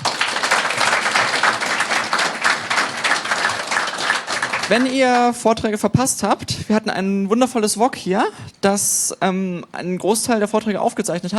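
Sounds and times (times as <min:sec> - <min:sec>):
audience applause: 0:00.0 - 0:05.3
speech: 0:04.7 - 0:11.3.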